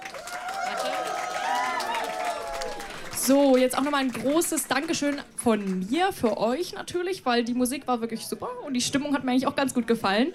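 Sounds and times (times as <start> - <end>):
cheering: 0.0 - 3.4
audience applause: 0.0 - 5.9
speech: 3.2 - 10.3.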